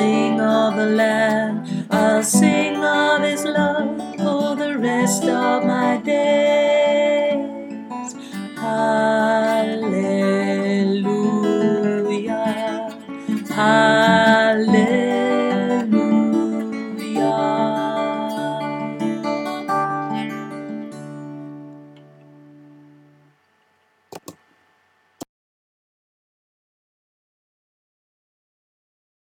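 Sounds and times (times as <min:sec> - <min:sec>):
tenor singing: 0:00.0 - 0:19.2.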